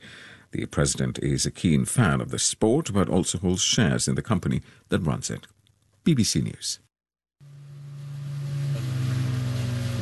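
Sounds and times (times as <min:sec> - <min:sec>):
speech: 0:00.5 - 0:06.9
boat engine humming: 0:07.4 - 0:10.0.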